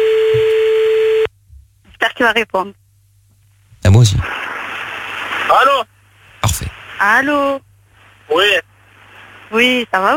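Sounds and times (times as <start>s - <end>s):
ringback tone of an outgoing telephone call: 0.0s - 1.3s
speech: 2.2s - 2.8s, 3.9s - 4.5s, 5.5s - 5.9s, 6.5s - 7.7s, 8.3s - 8.7s, 9.5s - 10.1s.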